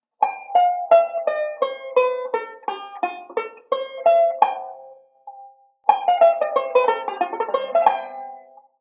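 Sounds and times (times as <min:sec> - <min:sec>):
banjo playing a modal sequence: 0:00.0 - 0:08.7.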